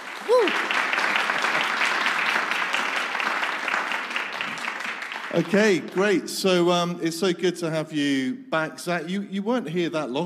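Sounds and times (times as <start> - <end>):
audience applause: 0.0 - 6.2
speech: 5.3 - 10.2.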